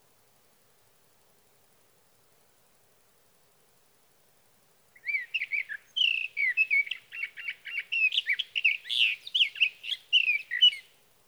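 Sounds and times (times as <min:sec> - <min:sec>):
sage thrasher singing a rambling fast warble: 0:05.0 - 0:10.9.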